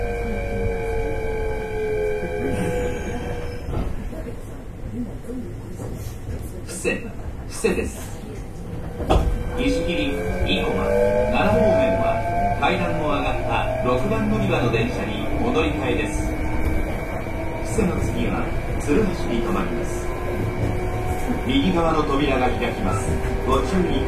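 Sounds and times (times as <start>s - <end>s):
express train rumbling on the Osaka Line: 0.0s - 24.0s
people talking: 4.0s - 8.8s, 9.4s - 20.0s, 21.3s - 24.0s.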